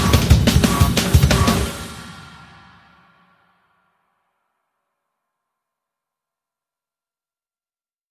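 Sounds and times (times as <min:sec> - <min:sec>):
sound effects: 0:00.0 - 0:03.1
drums: 0:00.0 - 0:03.6.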